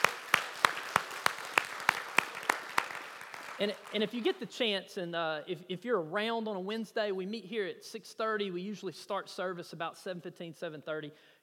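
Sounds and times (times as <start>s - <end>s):
audience applause: 0.0s - 4.3s
sharp evenly spaced claps: 0.0s - 4.5s
speech: 3.6s - 11.4s.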